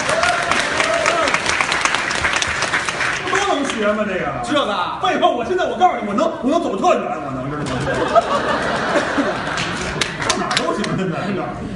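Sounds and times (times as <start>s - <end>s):
crowd applause: 0.0s - 3.8s, 7.7s - 10.9s
speech: 3.8s - 9.5s, 10.8s - 11.7s
laughter: 7.6s - 11.7s.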